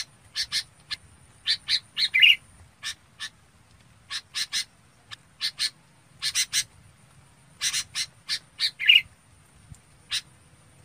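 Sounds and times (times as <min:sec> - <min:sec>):
red-whiskered bulbul rasping chip calls: 0:00.0 - 0:03.4, 0:04.1 - 0:06.7, 0:07.6 - 0:09.1, 0:10.1 - 0:10.3.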